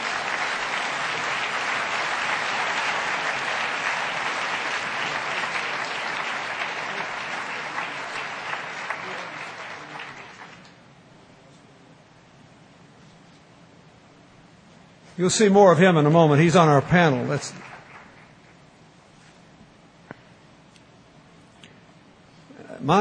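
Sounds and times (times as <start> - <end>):
audience applause: 0.0 - 10.8, 15.5 - 18.6
speech: 15.2 - 17.7.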